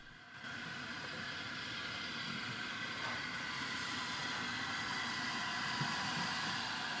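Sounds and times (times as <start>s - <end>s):
Flying Scotsman steam locomotive crossing a cast iron railway bridge: 0.0s - 6.9s.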